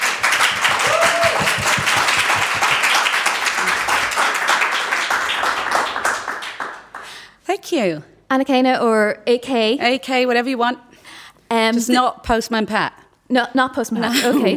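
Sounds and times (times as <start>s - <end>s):
live audience applause welcoming a novelist at a literary event in Dublin: 0.0s - 7.2s
speech: 7.5s - 10.9s, 11.6s - 14.5s.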